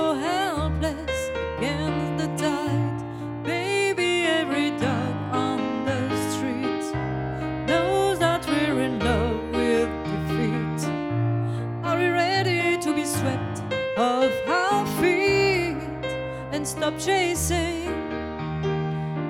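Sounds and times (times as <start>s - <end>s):
piano: 0.0s - 19.2s.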